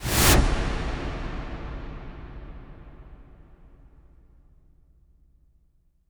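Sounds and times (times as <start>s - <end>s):
cinematic impact: 0.0s - 4.2s.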